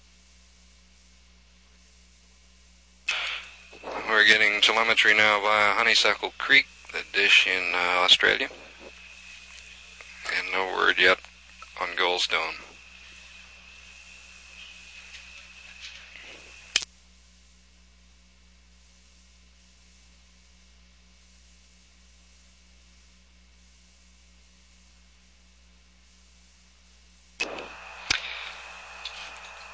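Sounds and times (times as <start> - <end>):
faint hum: 0.0 - 29.7
radio carrier static hiss before a transmission: 0.0 - 29.7
speech: 4.2 - 8.7, 10.6 - 12.7
sharp clicks: 27.4 - 29.7.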